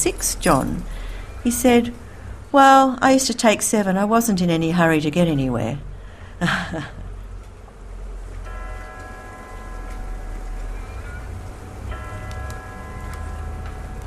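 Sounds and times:
speech: 0:00.0 - 0:07.0
low rumble and hiss: 0:00.0 - 0:14.0
prison clock bell ringing the hour: 0:08.4 - 0:14.0.

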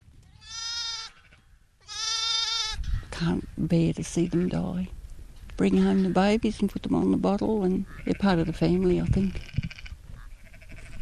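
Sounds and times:
lamb bleating: 0:00.4 - 0:02.8, 0:07.8 - 0:11.0
speech: 0:03.2 - 0:05.0, 0:05.6 - 0:09.5.

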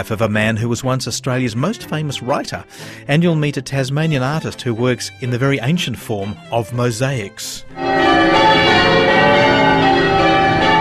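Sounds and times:
speech: 0:00.0 - 0:09.1
church bells pealing: 0:07.7 - 0:10.8.

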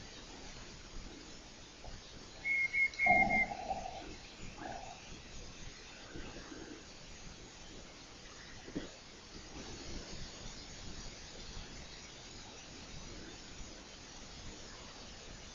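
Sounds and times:
night parrot whistling: 0:02.5 - 0:04.1.

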